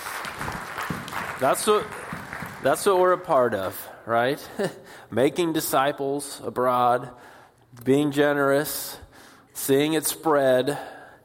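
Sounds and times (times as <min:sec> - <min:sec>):
audience clapping: 0:00.0 - 0:03.8
speech: 0:01.4 - 0:02.0, 0:02.6 - 0:09.0, 0:09.6 - 0:11.0.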